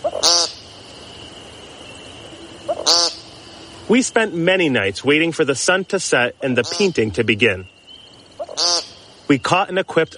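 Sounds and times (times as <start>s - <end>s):
American woodcock giving buzzy nasal peent calls: 0.0s - 4.0s, 5.6s - 10.1s
speech: 3.9s - 7.8s, 9.3s - 10.1s.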